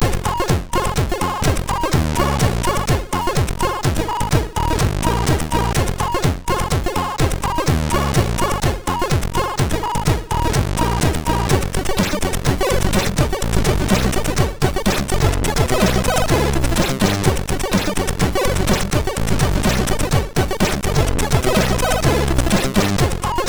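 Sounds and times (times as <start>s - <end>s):
SID MOS6581R3 chip sound: 0.0s - 23.4s.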